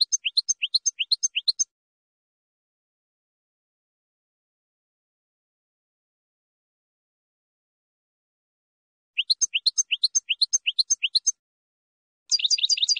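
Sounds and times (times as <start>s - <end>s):
finch song: 0.0s - 1.7s, 9.2s - 11.4s, 12.3s - 12.9s.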